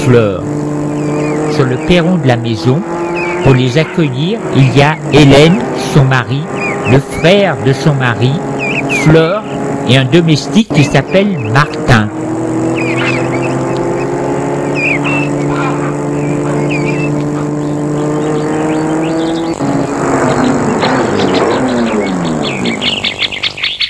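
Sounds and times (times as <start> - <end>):
car pulling up and stopping: 0.0 - 23.8
speech: 0.1 - 0.7, 1.5 - 12.2.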